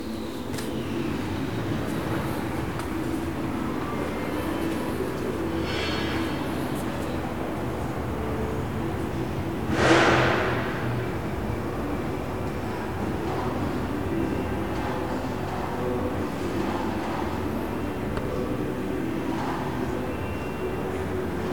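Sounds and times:
home courtyard ambience: 0.0s - 21.5s.

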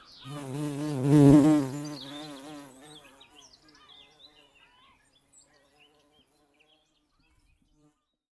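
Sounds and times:
bumblebee buzzing: 0.3s - 3.2s.

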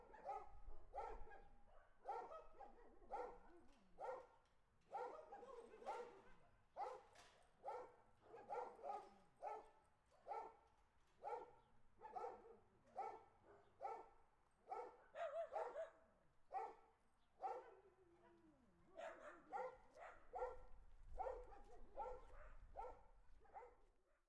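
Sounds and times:
several dogs barking on a street: 0.0s - 3.4s, 4.0s - 4.3s, 4.9s - 6.2s, 6.8s - 10.6s, 11.2s - 16.8s, 17.4s - 17.8s, 19.0s - 23.8s.

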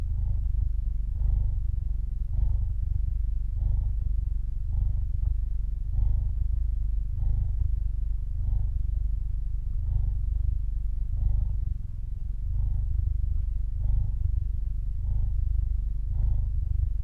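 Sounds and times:
cat purring: 0.0s - 17.0s.

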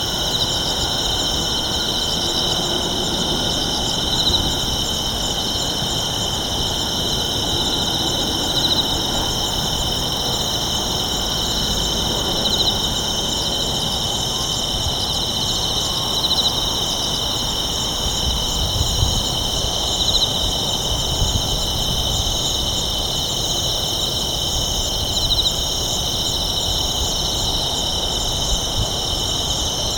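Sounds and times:
low hum of town traffic: 0.0s - 21.4s
night insects trilling in chorus: 0.0s - 29.9s.

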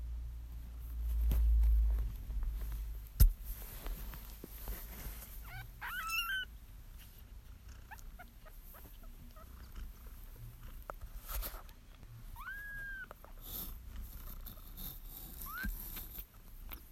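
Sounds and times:
rustling: 0.5s - 16.9s
kitten meows: 5.4s - 6.5s, 12.4s - 13.2s.

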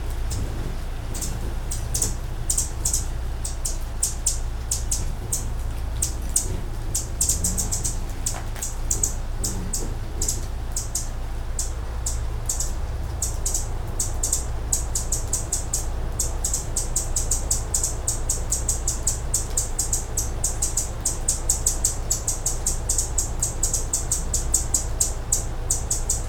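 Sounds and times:
hummingbird chirps: 0.0s - 26.2s.

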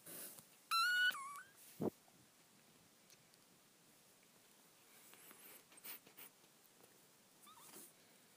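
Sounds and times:
kitten mewing: 0.7s - 1.6s
faint rustles: 1.4s - 8.3s.

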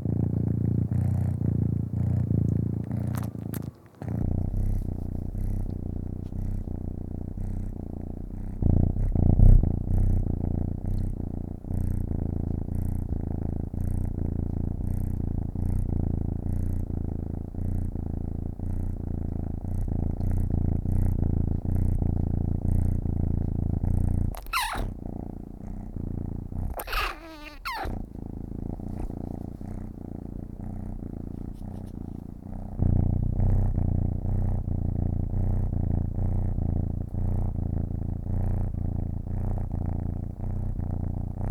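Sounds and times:
domestic cat purring: 0.0s - 41.4s
cat meowing: 24.4s - 24.9s, 26.8s - 27.9s.

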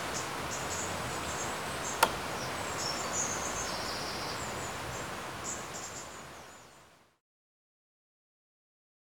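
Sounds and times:
birds singing by a river: 0.0s - 6.9s.

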